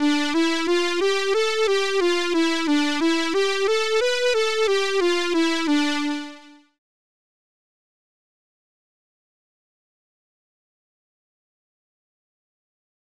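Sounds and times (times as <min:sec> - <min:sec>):
midi music: 0:00.0 - 0:06.6.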